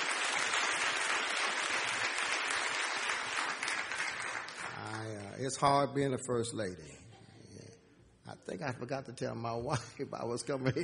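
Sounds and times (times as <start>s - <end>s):
crowd clapping: 0.0s - 5.8s
speech: 5.4s - 7.0s, 8.5s - 10.8s.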